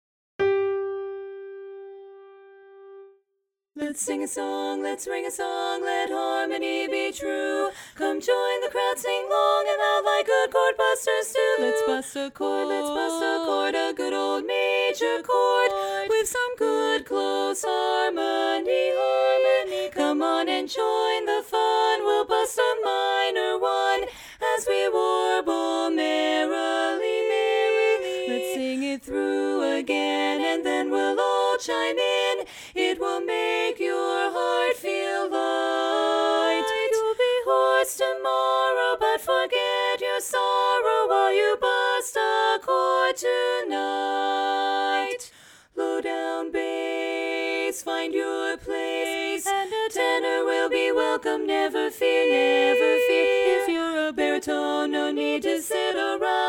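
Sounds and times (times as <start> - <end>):
chorus singing: 3.8 - 56.4.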